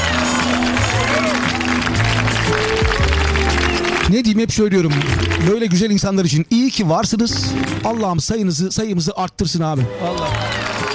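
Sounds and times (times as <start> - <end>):
audience applause: 0.0 - 5.9, 7.4 - 8.0, 9.8 - 10.9
speech: 4.1 - 10.6.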